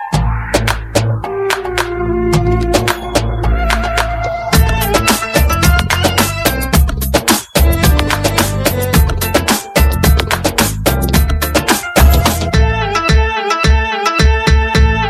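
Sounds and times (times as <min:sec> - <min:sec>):
Arabic dance beats: 0:00.2 - 0:15.0.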